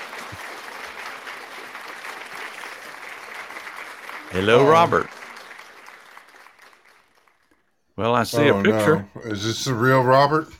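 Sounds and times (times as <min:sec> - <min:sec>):
applause: 0:00.0 - 0:07.9
speech: 0:04.3 - 0:05.2, 0:08.0 - 0:10.5.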